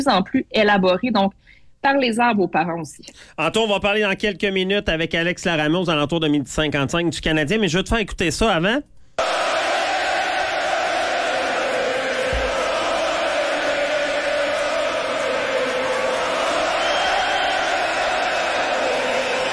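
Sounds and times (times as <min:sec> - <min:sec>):
speech: 0:00.0 - 0:09.7
huge crowd roaring and cheering: 0:09.2 - 0:19.5
low thump: 0:12.3 - 0:12.7.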